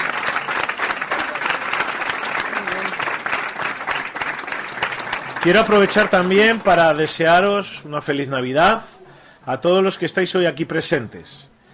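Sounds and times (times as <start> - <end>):
audience applause: 0.0 - 7.6
speech: 5.4 - 8.9, 9.5 - 11.5.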